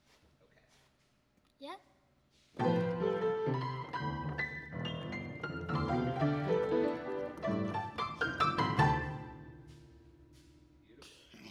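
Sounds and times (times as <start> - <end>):
piano: 2.6 - 10.6.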